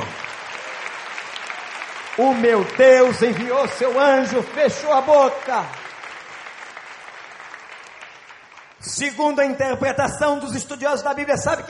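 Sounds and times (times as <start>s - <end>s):
audience applause: 0.0s - 9.1s
speech: 2.2s - 5.8s, 8.8s - 11.6s.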